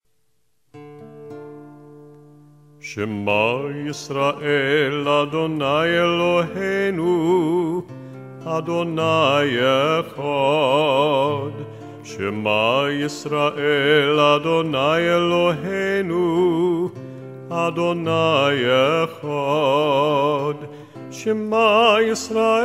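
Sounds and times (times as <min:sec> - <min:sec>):
person singing a prayer: 0:02.8 - 0:22.6.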